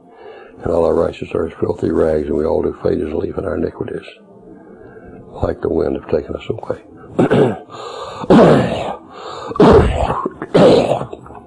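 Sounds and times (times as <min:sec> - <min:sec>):
speech: 0:00.6 - 0:04.3, 0:05.4 - 0:08.8
rough voiced gasps and groans: 0:07.1 - 0:11.4
choking coughs from a congested throat: 0:07.2 - 0:11.3.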